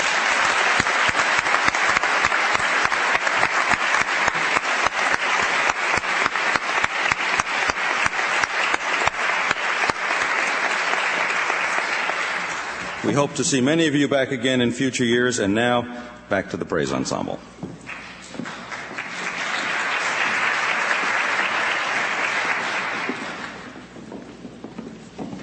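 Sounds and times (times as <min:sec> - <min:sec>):
crowd applauding: 0:00.0 - 0:13.7, 0:17.8 - 0:24.2
speech: 0:13.2 - 0:17.6.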